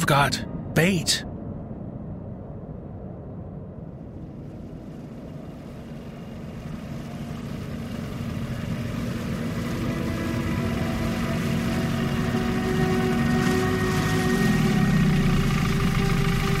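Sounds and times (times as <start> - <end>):
speech: 0.1 - 1.3
wooden boat engine humming: 4.3 - 16.5.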